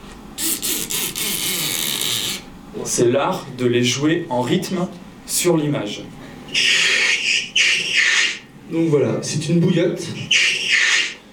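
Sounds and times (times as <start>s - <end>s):
squeak from rubbing a tape strip: 0.4s - 2.5s, 6.5s - 8.4s, 10.3s - 11.2s
speech: 2.8s - 6.7s, 8.7s - 10.4s.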